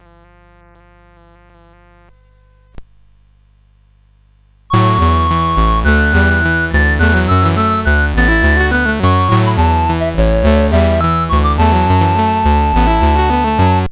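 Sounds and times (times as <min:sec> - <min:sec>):
CSG 8580R5 sound chip synthesizer chords: 0:04.7 - 0:13.9.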